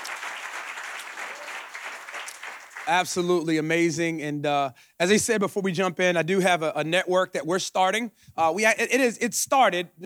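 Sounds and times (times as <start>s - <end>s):
audience applause for the Church of the Highlands team and staff: 0.0s - 3.2s
speech: 2.9s - 10.0s.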